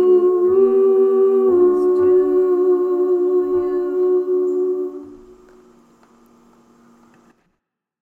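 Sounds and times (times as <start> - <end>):
soprano singing: 0.0 - 5.8.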